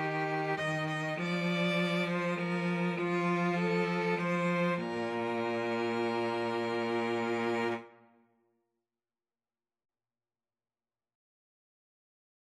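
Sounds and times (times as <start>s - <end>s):
cello: 0.0s - 8.0s
two violins: 0.0s - 8.0s.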